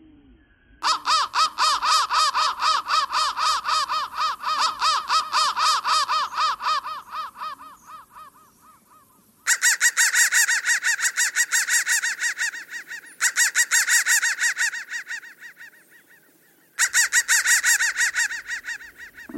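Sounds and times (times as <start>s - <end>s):
crow cawing in harsh repeated notes: 0.8s - 19.3s.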